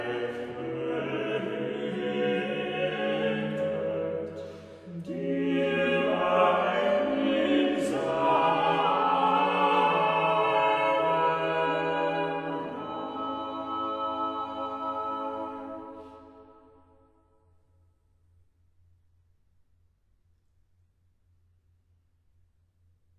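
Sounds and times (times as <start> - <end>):
chorale sung by four voices: 0.0 - 16.9.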